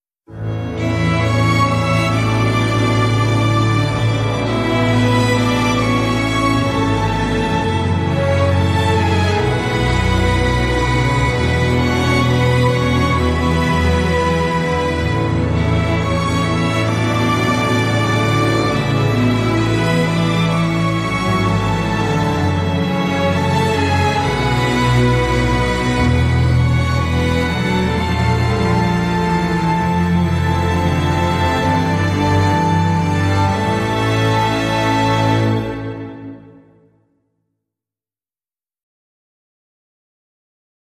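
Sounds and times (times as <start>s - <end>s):
orchestra solo: 0.3s - 36.9s.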